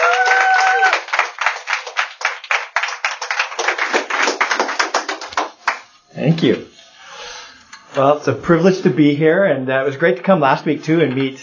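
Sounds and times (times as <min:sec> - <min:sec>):
audience applause welcoming a speaker at a members' meeting: 0:00.0 - 0:05.9
speech: 0:06.2 - 0:06.7, 0:08.0 - 0:11.4.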